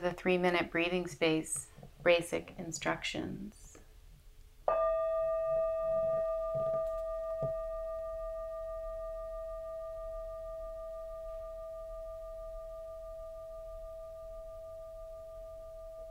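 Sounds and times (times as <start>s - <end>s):
speech: 0.0s - 3.6s
meditation bell ringing: 4.7s - 16.0s.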